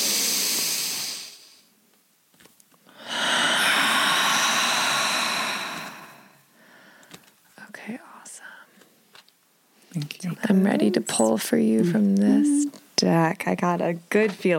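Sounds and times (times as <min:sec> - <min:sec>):
deep breathing: 0:00.0 - 0:01.7, 0:02.9 - 0:07.2
speech: 0:10.0 - 0:14.5.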